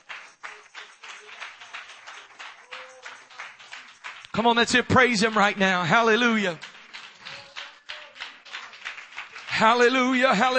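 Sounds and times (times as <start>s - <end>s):
crowd clapping hands in a steady rhythm: 0.0s - 10.5s
speech: 4.4s - 6.7s, 9.6s - 10.5s.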